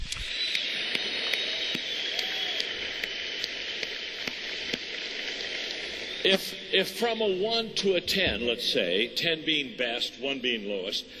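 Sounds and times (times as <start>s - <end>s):
audience applause: 0.3s - 6.6s
speech: 6.2s - 11.1s.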